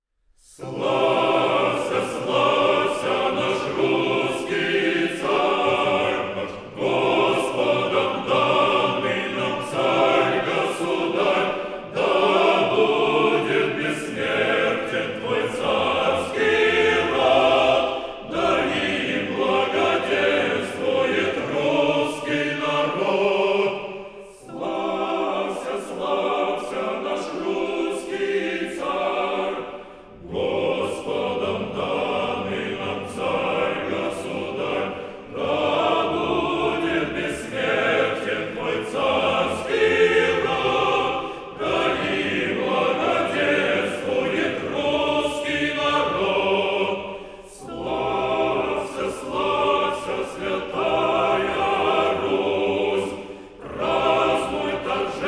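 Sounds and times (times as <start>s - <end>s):
male choir singing: 0.4s - 55.2s.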